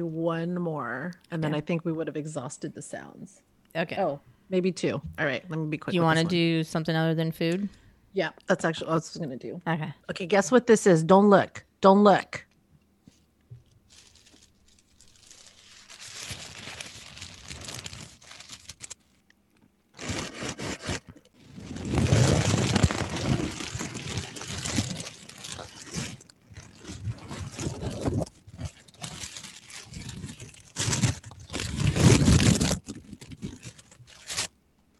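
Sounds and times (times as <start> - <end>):
speech: 0.0 - 12.5
tissue paper being crumpled: 13.8 - 19.2, 20.0 - 34.5.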